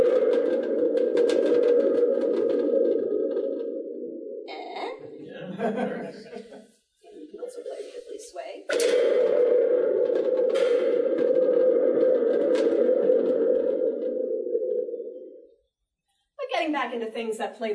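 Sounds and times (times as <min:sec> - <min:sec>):
thunder tube rumbling: 0:00.0 - 0:05.8, 0:07.2 - 0:15.5
laughter: 0:04.8 - 0:06.7
speech: 0:17.4 - 0:17.7.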